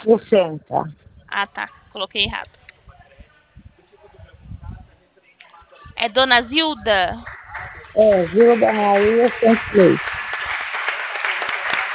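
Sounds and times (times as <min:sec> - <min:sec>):
speech: 0:00.0 - 0:02.6, 0:06.0 - 0:07.3, 0:07.9 - 0:10.2
office staff clapping to celebrate a sale: 0:06.8 - 0:11.9.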